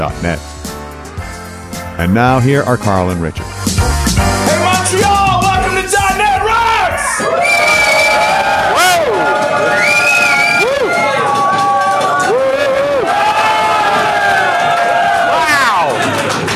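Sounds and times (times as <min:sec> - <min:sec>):
speech: 0:00.0 - 0:00.5, 0:02.0 - 0:03.5
live audience cheering in Montreal at a developer conference: 0:04.4 - 0:16.5
whistles: 0:07.4 - 0:08.4, 0:09.7 - 0:10.8
clapping: 0:08.7 - 0:16.5.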